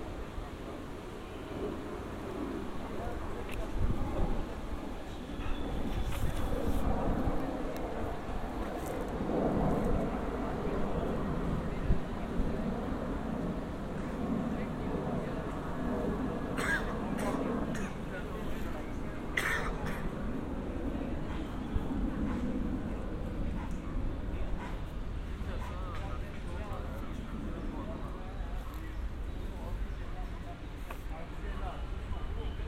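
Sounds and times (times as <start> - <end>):
low rumble of traffic in Amsterdam: 0.0 - 32.6
murmur of voices in Amsterdam: 0.0 - 32.6.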